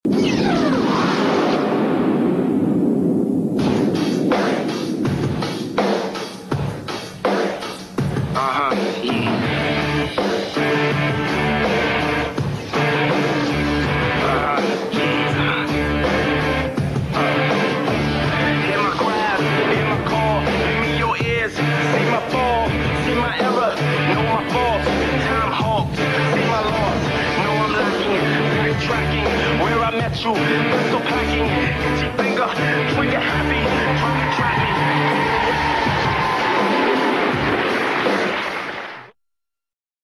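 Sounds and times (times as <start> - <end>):
opening theme music: 0.1 - 39.0.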